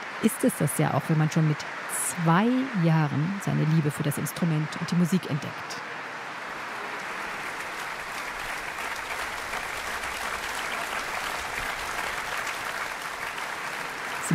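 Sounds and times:
speech: 0:00.2 - 0:06.0
concert audience applause in a church: 0:06.6 - 0:14.3.

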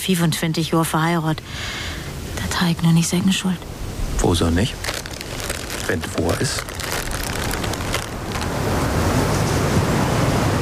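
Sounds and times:
speech: 0:00.0 - 0:02.0, 0:02.6 - 0:04.9, 0:05.9 - 0:06.7
storm wind roaring: 0:03.7 - 0:10.5.

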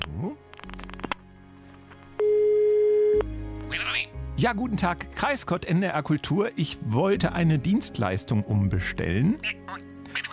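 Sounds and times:
telephone line tone while placing a call: 0:02.2 - 0:03.3
speech: 0:04.4 - 0:09.9.

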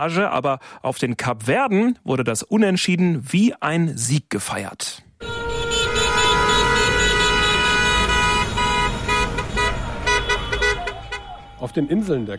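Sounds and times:
speech: 0:00.0 - 0:05.4, 0:11.6 - 0:12.3
car horns honking in street celebration: 0:05.2 - 0:12.3
low rumble of traffic: 0:05.2 - 0:12.3.

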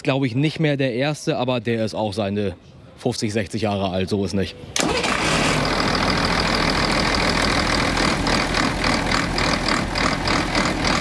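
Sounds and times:
speech: 0:00.0 - 0:05.2
old truck engine idling: 0:04.8 - 0:11.0.

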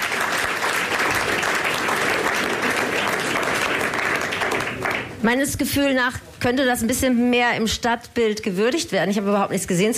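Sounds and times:
applause: 0:00.0 - 0:05.4
speech: 0:05.2 - 0:09.9.

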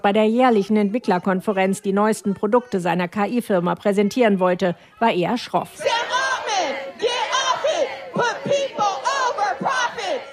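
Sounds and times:
speech: 0:00.0 - 0:06.7
protesters chanting slogans: 0:05.6 - 0:10.3.

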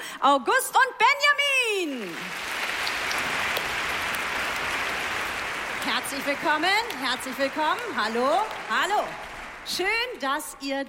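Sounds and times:
speech: 0:00.2 - 0:02.5, 0:05.8 - 0:10.8
audience applause: 0:02.0 - 0:10.3.

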